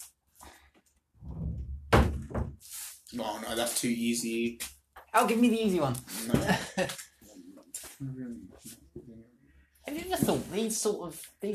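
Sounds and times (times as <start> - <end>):
door being closed: 1.2 - 2.6
speech: 3.1 - 7.0, 8.0 - 9.3, 9.9 - 11.5.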